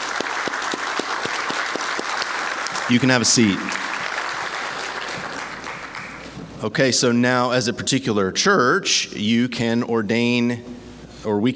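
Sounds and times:
audience applause: 0:00.0 - 0:06.4
speech: 0:02.9 - 0:03.8, 0:06.6 - 0:11.5.

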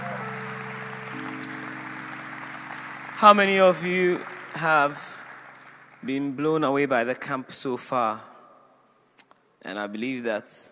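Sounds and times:
audience hand clapping: 0:00.0 - 0:07.3
speech: 0:03.2 - 0:05.2, 0:06.0 - 0:08.3, 0:09.6 - 0:10.7.

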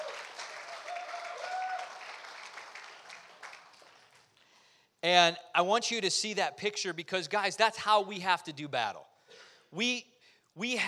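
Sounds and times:
whistle or cheer: 0:00.0 - 0:02.0
audience applauding: 0:00.0 - 0:04.3
speech: 0:05.0 - 0:09.1, 0:09.7 - 0:10.8.

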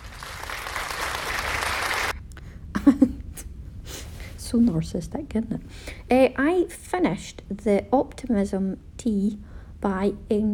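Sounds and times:
applause sound effect: 0:00.0 - 0:02.2
speech: 0:04.5 - 0:10.5.

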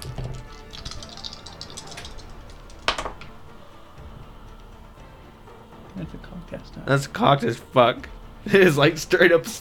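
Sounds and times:
dice being rolled into a tray: 0:00.1 - 0:03.3
speech: 0:06.3 - 0:09.5.

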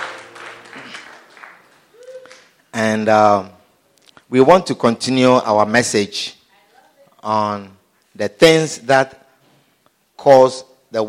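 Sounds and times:
audience clapping: 0:00.0 - 0:02.8
speech: 0:02.8 - 0:03.6, 0:04.3 - 0:06.4, 0:07.2 - 0:09.2, 0:10.2 - 0:11.0.

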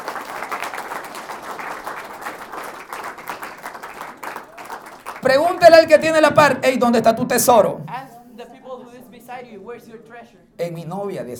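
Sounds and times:
audience applause: 0:00.0 - 0:07.2
speech: 0:05.2 - 0:07.9, 0:09.6 - 0:11.3.

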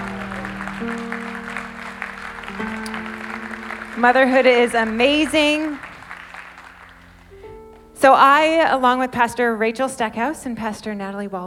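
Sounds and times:
audience applause: 0:00.0 - 0:07.5
speech: 0:00.8 - 0:01.3, 0:04.0 - 0:05.8, 0:08.0 - 0:11.4.

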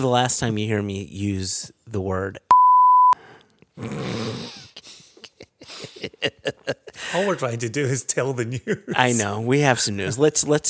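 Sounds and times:
speech: 0:00.0 - 0:02.5, 0:03.8 - 0:04.6, 0:06.0 - 0:10.6
censor bleep: 0:02.5 - 0:03.2
snorting wheezy noise: 0:03.2 - 0:06.2
laughter: 0:04.5 - 0:10.6.

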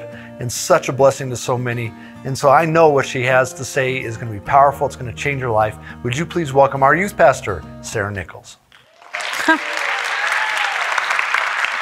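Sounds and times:
speech: 0:00.4 - 0:08.6, 0:09.5 - 0:09.8
audience applause: 0:08.8 - 0:11.8.

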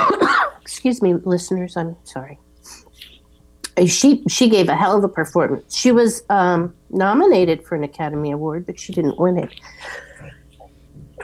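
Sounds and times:
sneeze: 0:00.0 - 0:00.6
speech: 0:00.8 - 0:02.8, 0:03.8 - 0:10.4
soft breath sounds: 0:09.5 - 0:11.2.

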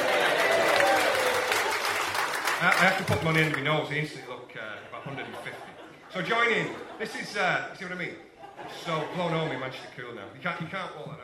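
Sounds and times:
laughter: 0:00.0 - 0:01.9, 0:04.6 - 0:10.3
audience applause: 0:00.0 - 0:03.7
speech: 0:02.6 - 0:04.3, 0:05.0 - 0:11.2.

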